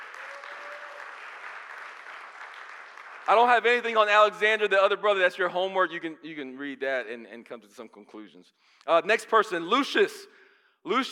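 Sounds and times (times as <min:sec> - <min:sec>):
audience applause: 0:00.0 - 0:03.9
speech: 0:03.2 - 0:11.0.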